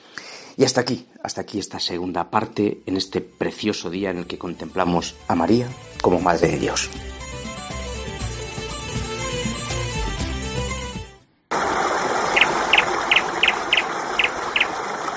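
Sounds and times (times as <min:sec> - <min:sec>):
speech: 0:00.6 - 0:07.1
music: 0:01.7 - 0:11.4
small bird chirping: 0:12.3 - 0:14.8.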